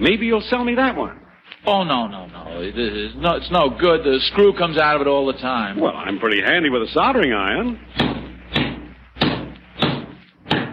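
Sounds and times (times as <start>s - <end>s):
speech: 0.0s - 8.2s
hammer hitting nails: 8.0s - 10.7s.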